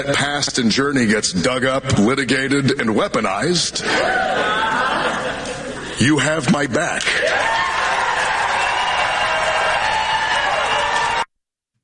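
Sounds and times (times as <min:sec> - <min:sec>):
speech: 0:00.0 - 0:04.8, 0:06.0 - 0:07.7
laughter: 0:03.8 - 0:06.0
people in background clapping and cheering: 0:07.0 - 0:11.3.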